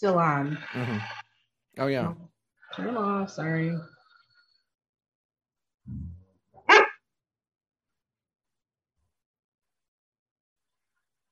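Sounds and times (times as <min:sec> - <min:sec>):
speech: 0:00.0 - 0:01.2, 0:01.8 - 0:04.0, 0:05.9 - 0:06.2
dog barking: 0:06.7 - 0:07.0.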